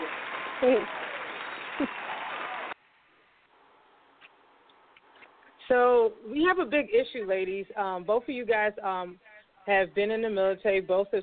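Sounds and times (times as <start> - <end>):
applause: 0.0 - 2.8
speech: 0.6 - 1.0, 1.8 - 2.0, 5.7 - 11.2.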